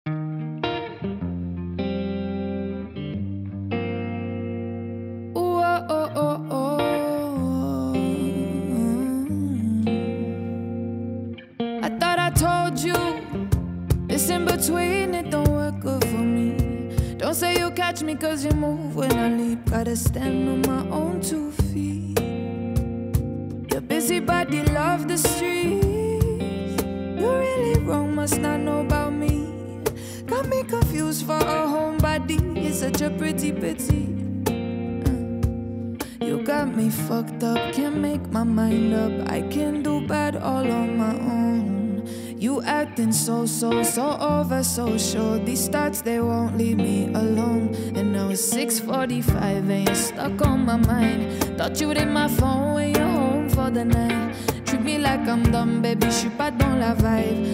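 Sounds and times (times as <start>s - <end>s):
acoustic music: 0.1s - 57.5s.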